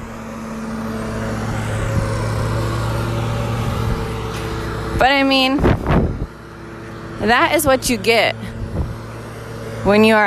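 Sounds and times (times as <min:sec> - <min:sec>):
lawnmower running: 0:00.0 - 0:10.2
speech: 0:05.0 - 0:05.8, 0:07.2 - 0:08.5, 0:09.8 - 0:10.2.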